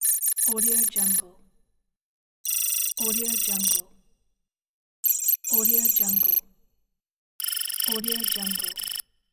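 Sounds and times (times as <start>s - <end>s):
digital text effect: 0.0s - 1.2s, 2.5s - 3.8s, 5.0s - 6.4s, 7.4s - 9.0s.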